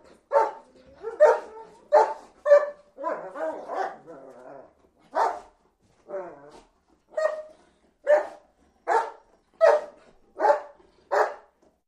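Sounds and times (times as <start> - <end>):
dog barking: 0.3 - 4.1, 5.1 - 5.5, 7.1 - 11.5.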